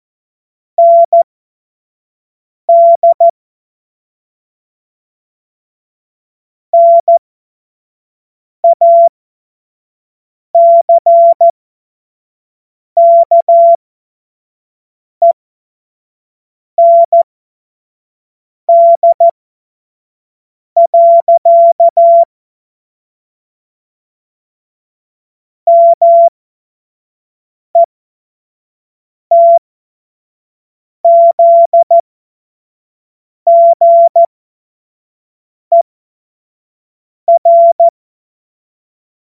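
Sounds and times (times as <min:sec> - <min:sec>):
morse code beeps: 0:00.8 - 0:01.2, 0:02.7 - 0:03.3, 0:06.8 - 0:07.2, 0:08.6 - 0:09.1, 0:10.6 - 0:11.5, 0:13.0 - 0:13.8, 0:16.8 - 0:17.2, 0:18.7 - 0:19.3, 0:20.8 - 0:22.3, 0:25.7 - 0:26.3, 0:29.3 - 0:29.6, 0:31.0 - 0:32.0, 0:33.5 - 0:34.3, 0:37.3 - 0:38.0.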